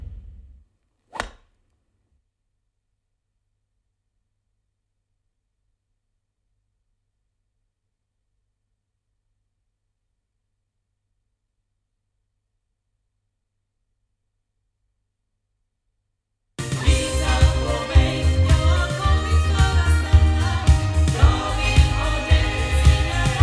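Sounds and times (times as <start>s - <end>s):
sound from loudspeakers: 16.6s - 23.4s.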